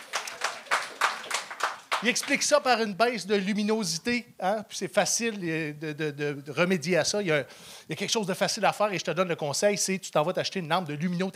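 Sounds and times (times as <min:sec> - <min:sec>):
small audience clapping: 0:00.0 - 0:02.6
speech: 0:02.0 - 0:11.3.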